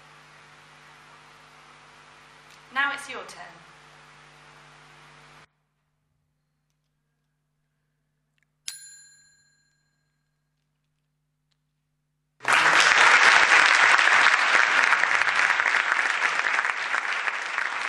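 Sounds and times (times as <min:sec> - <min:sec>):
speech: 0:02.7 - 0:03.7
audience applause: 0:12.4 - 0:17.8.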